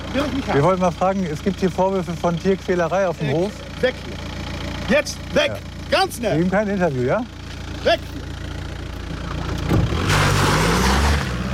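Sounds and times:
speech: 0:00.2 - 0:04.3, 0:04.9 - 0:08.2
car driving off with squealing tires: 0:09.8 - 0:11.5.

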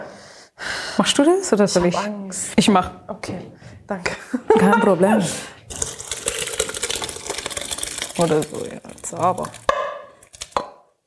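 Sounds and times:
speech: 0:01.0 - 0:05.8, 0:08.2 - 0:09.7
laughter: 0:04.2 - 0:05.3
blender mixing lentil soup: 0:05.7 - 0:09.6.

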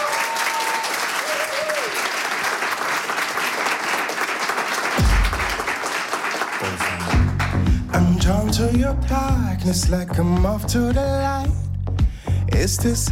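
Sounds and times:
studio audience applause: 0:00.0 - 0:07.9
speech: 0:08.2 - 0:11.6, 0:12.6 - 0:13.0.

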